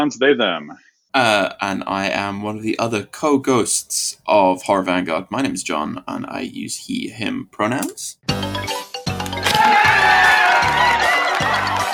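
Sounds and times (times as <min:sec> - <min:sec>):
speech: 0:00.0 - 0:08.8
spooky applause sound effect: 0:09.4 - 0:11.9.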